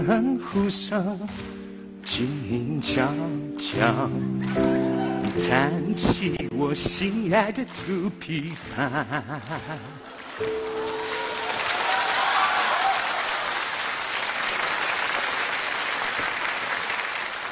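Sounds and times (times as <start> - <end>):
speech: 0.0 - 10.7
audience applause: 8.5 - 17.4.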